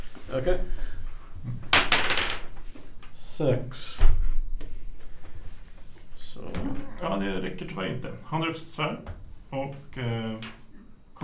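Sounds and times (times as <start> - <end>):
speech: 0.3 - 0.8, 3.4 - 4.1, 6.4 - 10.6
dice clattering across a tabletop: 1.7 - 2.6.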